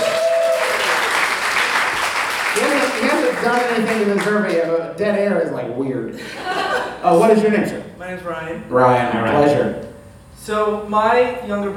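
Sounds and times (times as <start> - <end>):
crowd applause for an audience member called to the stage: 0.0 - 4.8
speech: 3.4 - 9.8, 10.4 - 11.7
laughter: 6.1 - 7.5.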